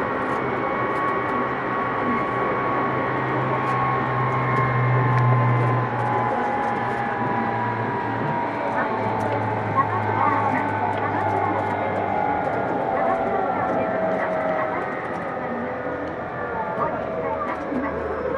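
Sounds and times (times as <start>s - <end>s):
Tokyu 2000 series train running between Shibuya and Azamino: 0.0s - 18.3s
faint voices: 0.0s - 18.3s.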